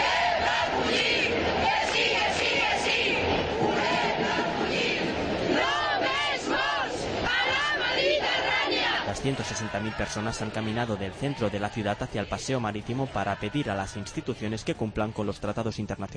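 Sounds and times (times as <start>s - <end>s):
protest crowd chanting slogans: 0.0s - 15.7s
speech: 9.2s - 16.1s.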